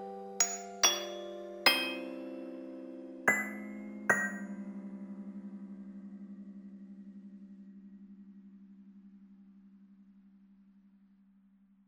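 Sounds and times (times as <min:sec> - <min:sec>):
music box: 0:00.0 - 0:04.7.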